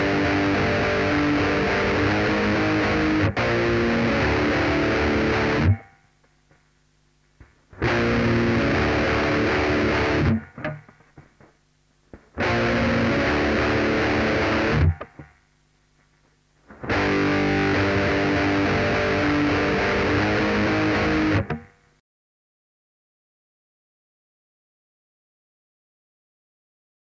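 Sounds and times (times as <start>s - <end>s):
saturated guitar: 0.0s - 6.0s, 7.7s - 11.4s, 12.1s - 15.4s, 16.6s - 21.9s.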